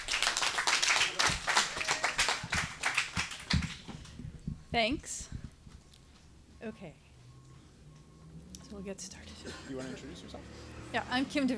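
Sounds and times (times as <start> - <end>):
audience applause: 0.0 - 3.9
speech: 4.7 - 5.2, 6.6 - 7.0, 8.7 - 11.5.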